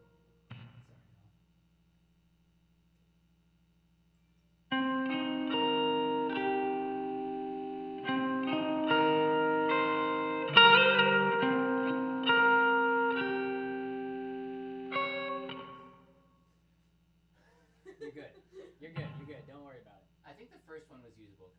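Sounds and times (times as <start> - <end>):
guitar texture: 4.7 - 16.1, 18.6 - 19.9
laughter: 17.4 - 19.2.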